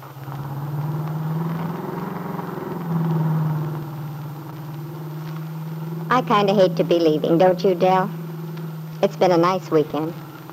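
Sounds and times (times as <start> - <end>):
car driving on a highway: 0.0 - 10.5
speech: 6.1 - 8.2, 9.0 - 10.5.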